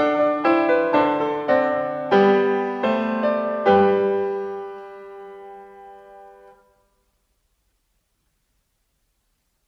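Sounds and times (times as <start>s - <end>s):
baroque keyboard variations: 0.0s - 6.7s.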